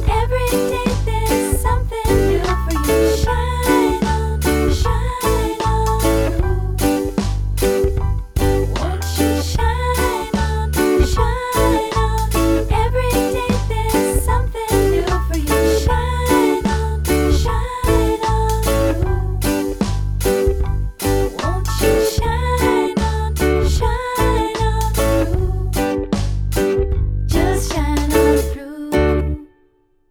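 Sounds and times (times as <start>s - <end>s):
reggae music: 0.0s - 29.5s.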